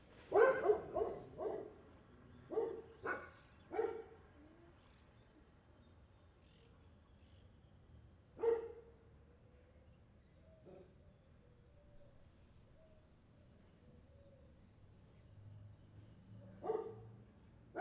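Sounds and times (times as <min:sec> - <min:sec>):
street dog barking: 0:00.3 - 0:01.8, 0:02.5 - 0:04.2, 0:08.4 - 0:08.8, 0:16.6 - 0:17.2.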